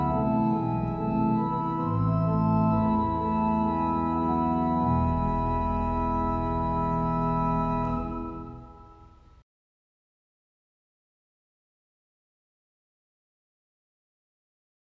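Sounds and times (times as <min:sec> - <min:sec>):
organ piece: 0:00.0 - 0:09.4.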